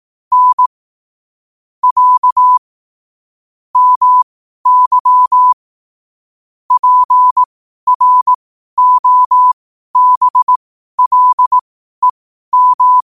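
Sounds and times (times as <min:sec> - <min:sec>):
morse code at 5 wpm: 0:00.3 - 0:00.7, 0:01.8 - 0:02.6, 0:03.8 - 0:05.6, 0:06.7 - 0:13.1.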